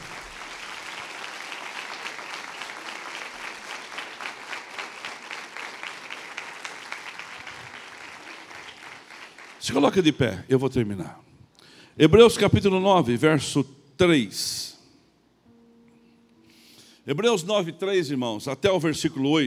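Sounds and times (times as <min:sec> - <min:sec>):
large audience applauding loudly: 0:00.0 - 0:10.1
speech: 0:09.6 - 0:11.3, 0:12.0 - 0:14.7, 0:17.1 - 0:19.4.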